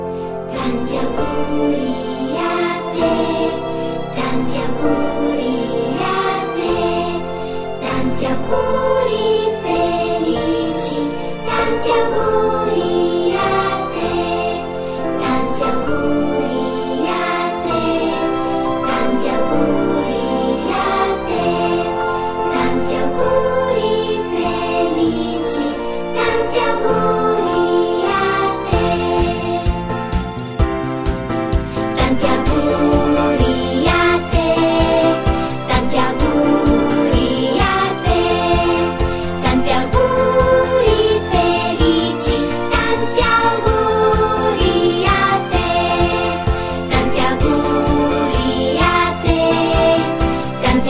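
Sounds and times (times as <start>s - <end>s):
birthday song in Italian: 0.1s - 30.4s, 31.0s - 50.8s.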